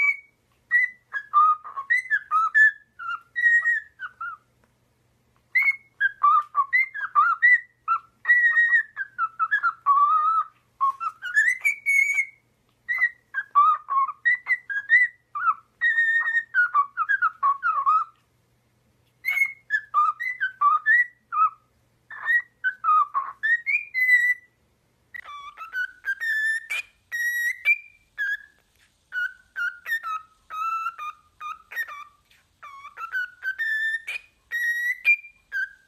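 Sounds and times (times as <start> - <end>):
cockatiel whistling tune: 0.0 - 4.5, 5.5 - 18.2, 19.2 - 35.8.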